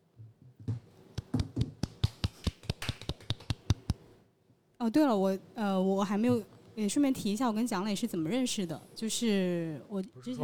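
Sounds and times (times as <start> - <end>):
applause: 1.3 - 3.9
speech: 4.8 - 10.4.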